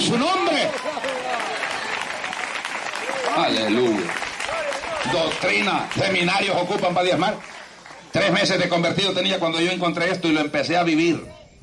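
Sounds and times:
faint raised voices: 0.0 - 6.9
audience applause: 0.0 - 8.7
speech: 0.1 - 1.0, 3.4 - 4.2, 5.0 - 7.5, 8.1 - 11.4.

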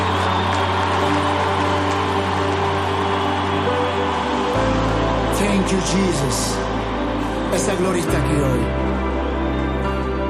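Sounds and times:
audience applause: 0.0 - 10.2
speech: 5.7 - 6.7, 7.5 - 9.1.

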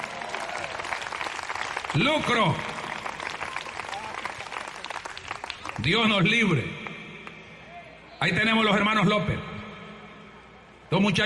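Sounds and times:
audience applause: 0.0 - 5.9
speech: 1.9 - 2.7, 5.8 - 6.8, 8.2 - 9.5, 10.9 - 11.2.

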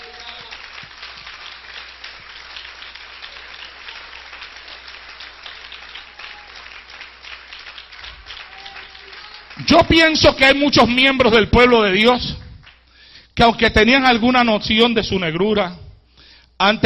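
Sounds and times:
audience applause: 0.0 - 10.2
speech: 9.6 - 12.4, 13.4 - 15.8, 16.6 - 16.8.

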